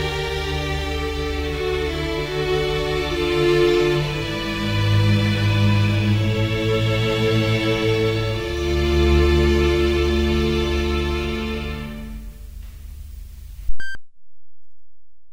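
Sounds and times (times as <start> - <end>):
baroque concerto grosso in D minor: 0.0 - 12.2.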